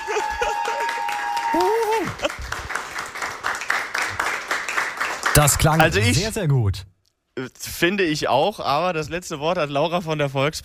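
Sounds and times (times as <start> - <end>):
audience applause at a German event: 0.0 - 6.3
speech: 5.4 - 10.6.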